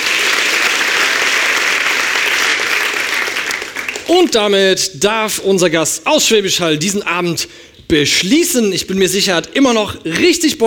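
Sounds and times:
audience applause: 0:00.0 - 0:04.1
speech: 0:04.1 - 0:10.6.

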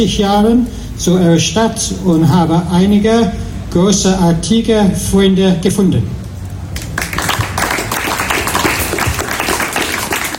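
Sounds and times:
speech: 0:00.0 - 0:06.2
audience applause at festival opening: 0:06.8 - 0:10.3.

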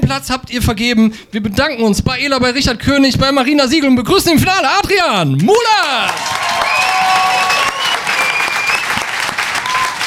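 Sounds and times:
speech: 0:00.1 - 0:07.4
audience applause: 0:05.4 - 0:10.0.

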